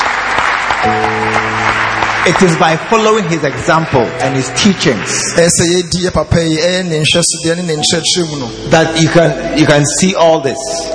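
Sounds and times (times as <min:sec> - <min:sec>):
audience clapping: 0:00.0 - 0:07.0
speech: 0:00.8 - 0:01.1, 0:02.2 - 0:10.9.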